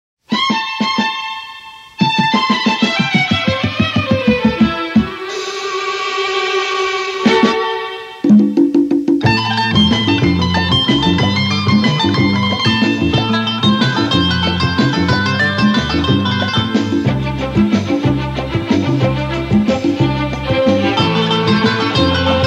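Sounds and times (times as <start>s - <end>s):
instrumental music: 0.2s - 22.4s.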